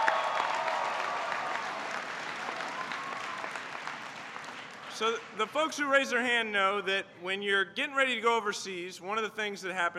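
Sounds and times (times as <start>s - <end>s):
audience applause: 0.0s - 5.5s
speech: 5.0s - 9.9s.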